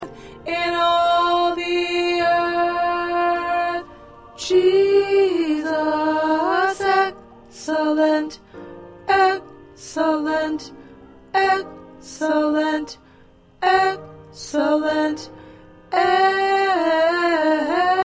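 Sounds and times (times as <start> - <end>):
tenor choir part singing: 0.1 - 13.0, 13.6 - 18.0.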